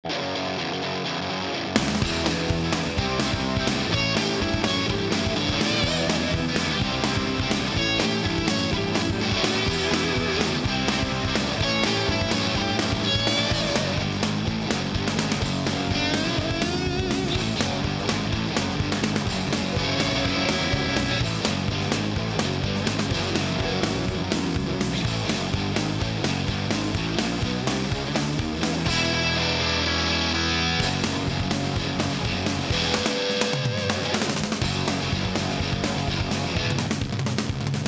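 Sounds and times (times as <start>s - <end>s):
hard rock music: 0.0s - 37.8s.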